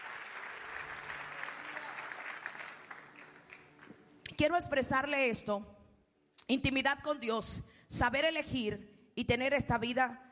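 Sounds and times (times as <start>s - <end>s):
audience applause: 0.0s - 4.0s
speech: 4.4s - 5.8s, 6.5s - 10.2s.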